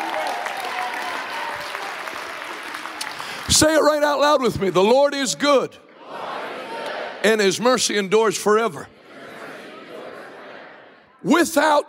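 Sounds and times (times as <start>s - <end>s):
audience applause: 0.0s - 4.0s
speech: 3.5s - 5.9s, 7.2s - 9.0s, 11.2s - 11.8s.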